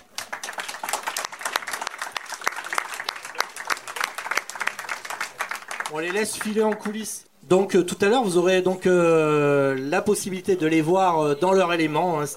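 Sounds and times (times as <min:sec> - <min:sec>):
crowd applauding: 0:00.0 - 0:07.0
speech: 0:05.9 - 0:12.3.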